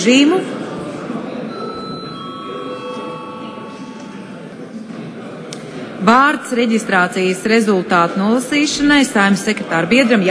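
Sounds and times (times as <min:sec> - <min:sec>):
speech: 0:00.0 - 0:00.6, 0:06.0 - 0:10.2
parliament chamber bell: 0:01.5 - 0:04.6.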